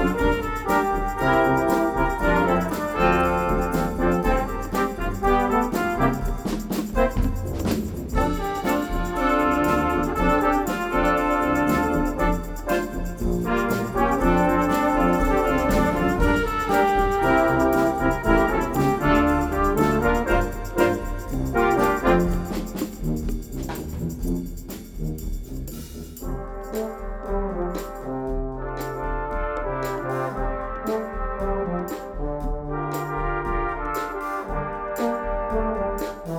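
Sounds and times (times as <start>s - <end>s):
jazz music: 0.0s - 36.3s.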